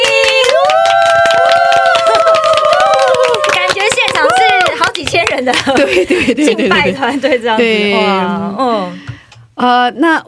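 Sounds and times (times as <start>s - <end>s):
audience clapping: 0.0s - 6.1s
high-pitched cheering and whooping voices: 0.1s - 4.8s
speech: 5.5s - 10.2s.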